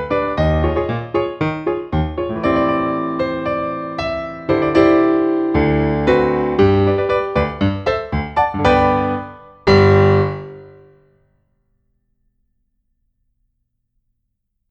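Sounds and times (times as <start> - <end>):
musical accompaniment: 0.0 - 11.0.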